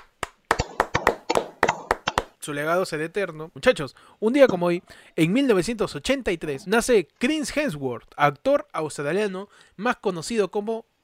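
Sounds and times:
applause: 0.0 - 2.3
speech: 2.4 - 10.9.

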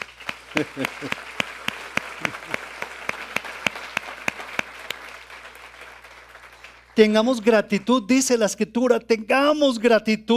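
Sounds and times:
audience applause: 0.0 - 7.0
laughter: 0.5 - 1.4, 2.0 - 2.8
speech: 0.6 - 1.3, 7.0 - 10.3.

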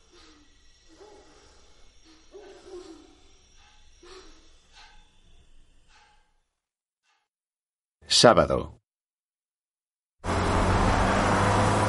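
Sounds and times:
speech: 8.2 - 8.8
car driving along a road: 10.2 - 11.8.

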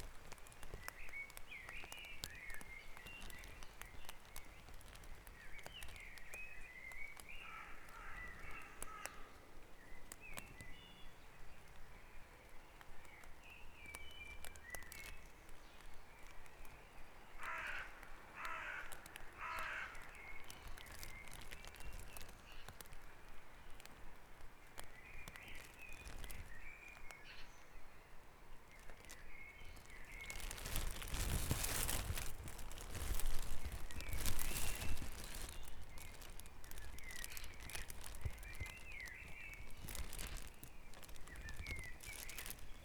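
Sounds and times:
crackling clicks: 0.0 - 9.2, 12.8 - 16.8, 17.4 - 27.1, 29.8 - 42.8
birds in a dawn chorus: 0.4 - 23.0, 28.8 - 42.8
harsh caw-like calls: 7.4 - 9.4, 17.4 - 20.1.

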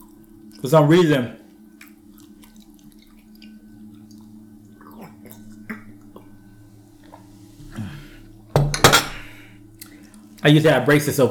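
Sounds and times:
speech: 0.6 - 1.4, 10.4 - 11.2
soft squishy chewing: 1.5 - 7.3, 9.8 - 10.5
cutlery clinking on a dish: 8.6 - 9.3.

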